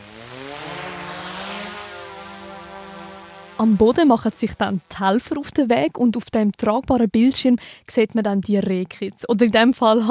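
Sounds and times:
drones taking off and flying: 0:00.0 - 0:05.2
speech: 0:03.6 - 0:10.1.

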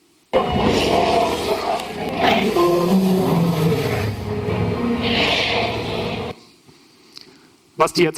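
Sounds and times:
dinosaur roar from a documentary: 0:00.4 - 0:06.4.

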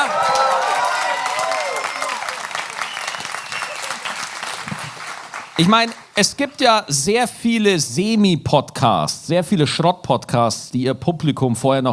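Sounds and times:
audience applause: 0:00.0 - 0:06.1
speech: 0:05.6 - 0:11.9.

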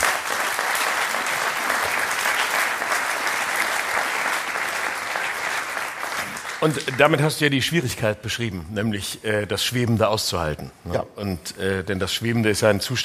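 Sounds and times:
audience applause: 0:00.0 - 0:07.4
speech: 0:06.6 - 0:13.0.

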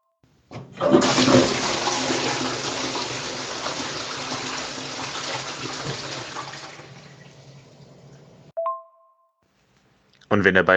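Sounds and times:
toilet flushing: 0:00.5 - 0:08.5.

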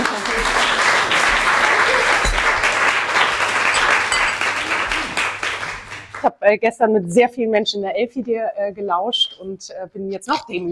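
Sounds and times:
audience applause: 0:00.0 - 0:06.3
speech: 0:06.4 - 0:10.7.

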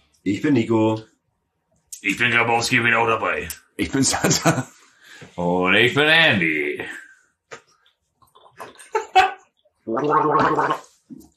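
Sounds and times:
speech: 0:00.2 - 0:01.1, 0:02.0 - 0:07.0, 0:09.9 - 0:11.3
people sipping and swallowing a Berliner Lüftchen drink: 0:07.6 - 0:08.9, 0:09.9 - 0:11.3
prolonged loud throaty gurgle: 0:09.8 - 0:11.0.

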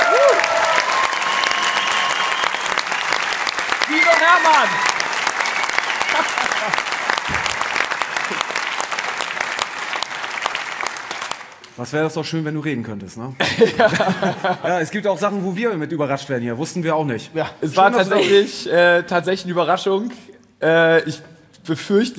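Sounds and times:
audience applause: 0:00.0 - 0:11.6
speech: 0:04.3 - 0:04.9, 0:06.6 - 0:06.8, 0:11.8 - 0:22.1
laughter: 0:06.0 - 0:07.0, 0:13.4 - 0:14.8.

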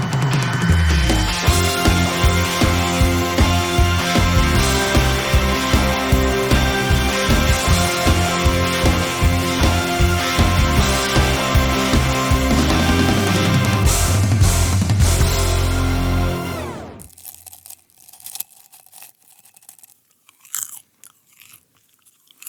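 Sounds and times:
loud music: 0:00.0 - 0:17.1
crunchy chewing of popcorn: 0:17.0 - 0:22.4.

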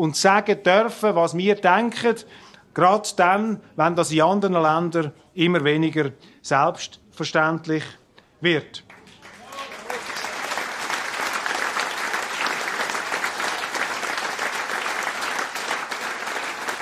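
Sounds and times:
speech: 0:00.0 - 0:08.9
audience applause: 0:08.9 - 0:16.8.

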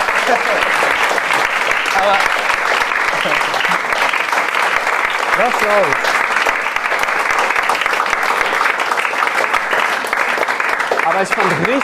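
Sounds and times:
laughter: 0:00.0 - 0:04.2
audience clapping: 0:00.0 - 0:11.8
speech: 0:00.3 - 0:00.9, 0:02.0 - 0:04.0, 0:05.4 - 0:06.2, 0:11.1 - 0:11.8.

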